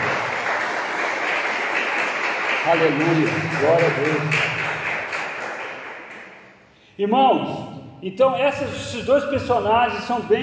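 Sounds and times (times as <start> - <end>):
audience applause: 0.0 - 6.4
speech: 2.6 - 4.6, 7.0 - 10.4.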